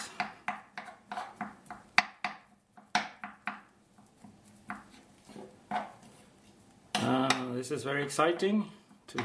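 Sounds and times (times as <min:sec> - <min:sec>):
knife chopping soft food into small pieces: 0:00.0 - 0:05.1
speech: 0:07.6 - 0:09.2.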